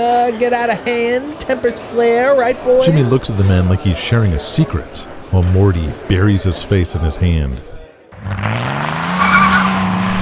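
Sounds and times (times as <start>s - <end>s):
speech: 0.0s - 8.7s
BMW tires screeching down Wilshire Boulevard: 8.2s - 10.2s.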